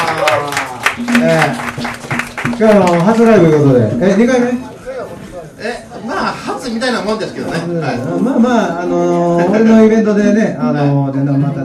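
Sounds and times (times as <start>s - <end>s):
audience applause: 0.0s - 3.4s
speech: 1.2s - 2.0s, 2.6s - 11.6s.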